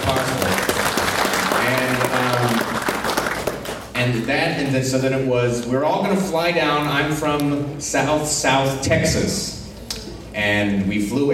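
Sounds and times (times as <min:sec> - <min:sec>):
crowd applauding: 0:00.0 - 0:03.9
speech: 0:04.1 - 0:09.6, 0:10.4 - 0:11.3.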